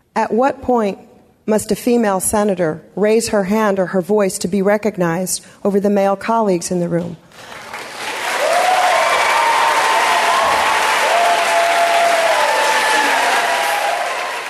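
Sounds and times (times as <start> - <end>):
speech: 0.2 - 7.6
crowd yelling in senate chamber: 7.9 - 14.4.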